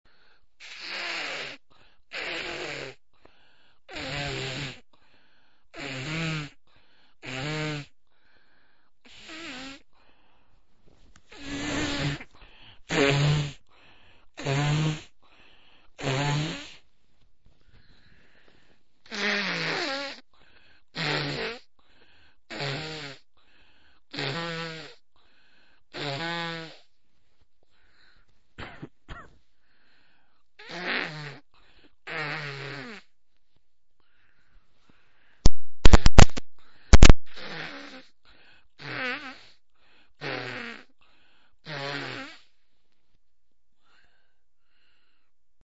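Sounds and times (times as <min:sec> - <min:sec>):
man blowing nose: 0:00.6 - 0:03.0, 0:03.9 - 0:04.8, 0:05.8 - 0:06.6, 0:07.2 - 0:07.9, 0:09.1 - 0:09.9, 0:11.3 - 0:13.7, 0:14.4 - 0:15.2, 0:16.0 - 0:16.8, 0:19.1 - 0:20.2, 0:21.0 - 0:21.7, 0:22.5 - 0:23.2, 0:24.1 - 0:25.0, 0:25.9 - 0:26.9, 0:30.6 - 0:31.4, 0:32.1 - 0:33.1, 0:35.4 - 0:38.1, 0:38.8 - 0:39.6, 0:40.2 - 0:40.9, 0:41.6 - 0:42.6.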